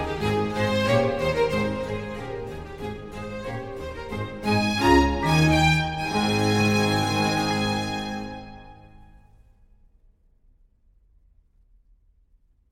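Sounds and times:
string orchestra with continuo playing an allegro: 0.0s - 9.2s.

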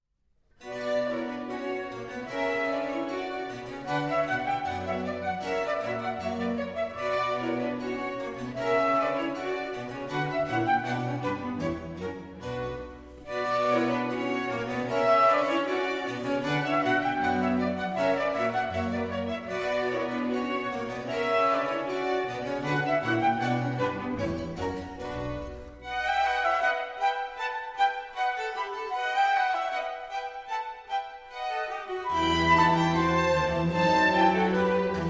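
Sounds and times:
orchestral suite rondeau: 0.6s - 35.0s.

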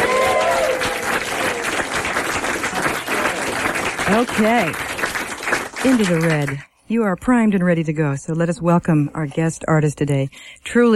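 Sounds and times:
studio audience cheering and applauding for a sound level test: 0.0s - 6.6s
speech: 4.1s - 4.9s, 5.8s - 10.9s.

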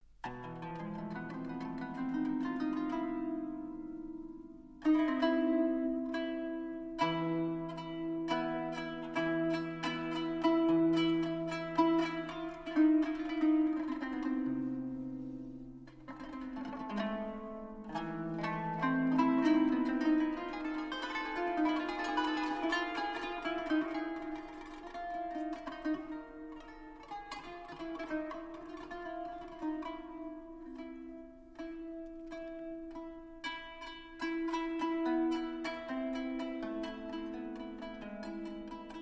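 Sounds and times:
kanun taksim improvisation: 0.0s - 39.0s.

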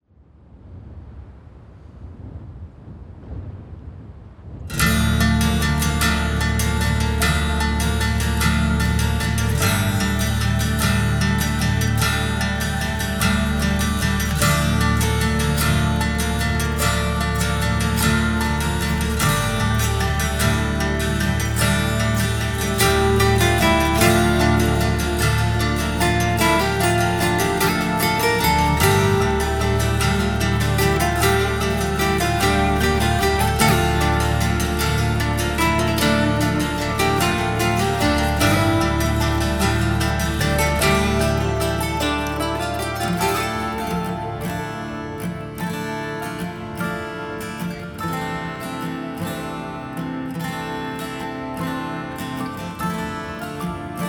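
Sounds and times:
acoustic instrumental music: 4.7s - 54.0s.

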